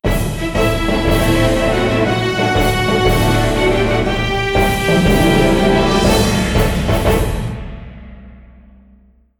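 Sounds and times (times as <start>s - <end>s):
victory music: 0.1s - 8.5s.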